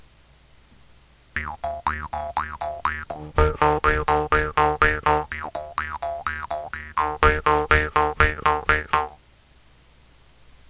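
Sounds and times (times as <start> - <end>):
jaw harp played randomly: 1.4 - 9.2.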